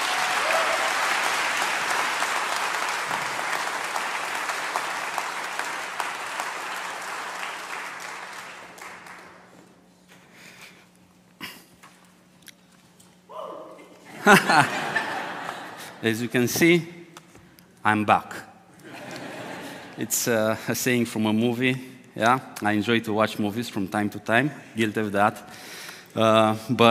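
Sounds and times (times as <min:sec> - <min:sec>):
church congregation applauding to welcome a guest preacher: 0:00.0 - 0:09.6, 0:14.4 - 0:15.8
laughter: 0:14.0 - 0:16.0, 0:18.8 - 0:20.1
speech: 0:14.3 - 0:14.8, 0:16.0 - 0:17.0, 0:17.8 - 0:18.5, 0:20.0 - 0:26.8.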